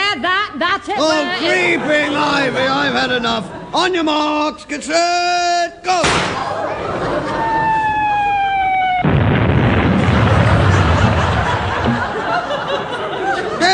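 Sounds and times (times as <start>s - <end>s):
speech: 0.1s - 7.5s
laughter: 1.0s - 4.0s, 6.3s - 8.6s, 10.1s - 13.7s
falling whistling tone: 7.5s - 9.1s
naval gunfire boom from the home fleet: 9.0s - 12.4s
rumbling noise: 9.0s - 12.6s.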